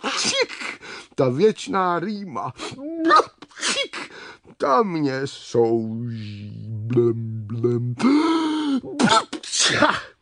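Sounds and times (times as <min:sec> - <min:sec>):
loud sneeze: 0:00.0 - 0:00.8, 0:03.1 - 0:04.1, 0:09.0 - 0:10.2
speech: 0:01.2 - 0:03.4, 0:04.6 - 0:10.1.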